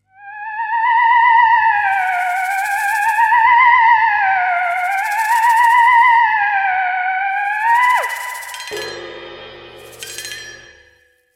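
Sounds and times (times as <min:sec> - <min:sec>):
theremin: 0:00.0 - 0:10.8.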